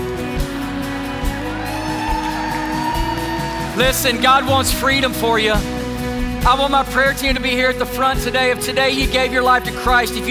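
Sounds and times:
audience cheering: 0:00.1 - 0:05.6
speech: 0:03.8 - 0:05.7, 0:06.4 - 0:10.2.

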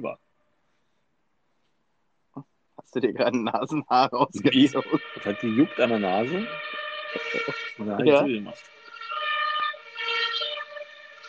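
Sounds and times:
speech: 0:00.0 - 0:00.2, 0:02.4 - 0:08.8
laughter: 0:03.0 - 0:06.5, 0:07.2 - 0:08.5
police car siren passing: 0:04.3 - 0:11.2.

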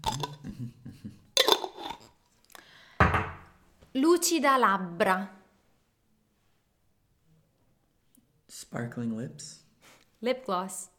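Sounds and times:
metal pot lid clanking: 0:01.4 - 0:02.1
speech: 0:04.0 - 0:05.4, 0:08.8 - 0:09.6, 0:10.2 - 0:10.9.

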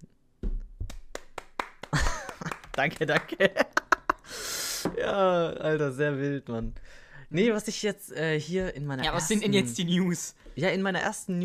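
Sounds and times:
scattered handclaps from a small audience: 0:00.8 - 0:03.4
speech: 0:02.8 - 0:03.7, 0:05.0 - 0:11.4.

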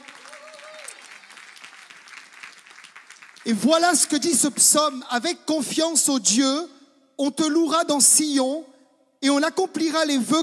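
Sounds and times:
audience applauding: 0:00.0 - 0:04.1
speech: 0:03.4 - 0:10.4.

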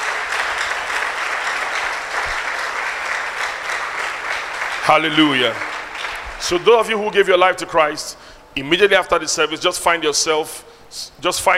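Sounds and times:
audience clapping hands: 0:00.0 - 0:07.3
speech: 0:04.9 - 0:05.7, 0:06.4 - 0:11.5.

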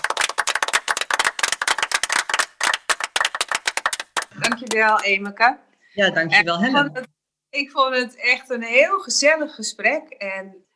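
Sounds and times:
one person clapping, self-applause: 0:00.0 - 0:05.4
speech: 0:04.6 - 0:10.7.

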